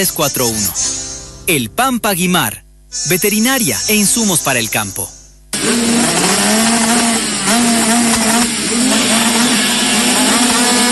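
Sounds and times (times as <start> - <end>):
speech: 0.0 - 0.9, 1.5 - 6.6
motorcycle engines roaring and revving: 5.5 - 10.9.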